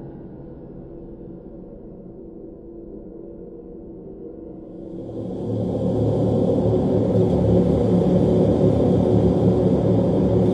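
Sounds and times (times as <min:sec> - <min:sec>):
alien spaceship atmosphere low hum with layered drone tones: 0:04.6 - 0:10.5
thin high whine and hiss: 0:04.7 - 0:10.5.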